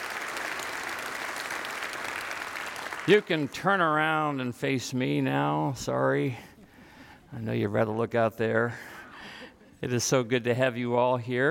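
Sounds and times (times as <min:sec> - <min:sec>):
audience clapping: 0:00.0 - 0:04.0
speech: 0:03.1 - 0:06.5, 0:07.3 - 0:08.9, 0:09.8 - 0:11.4.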